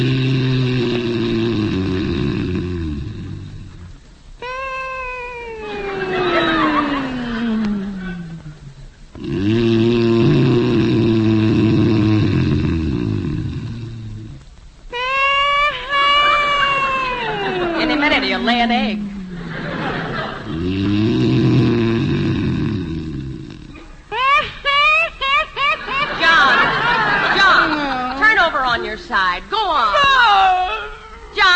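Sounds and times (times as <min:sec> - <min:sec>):
man snoring loudly in bed: 0:00.0 - 0:03.9, 0:09.2 - 0:14.4, 0:20.4 - 0:23.7
laughter: 0:04.9 - 0:08.6, 0:15.0 - 0:20.6, 0:24.1 - 0:31.4.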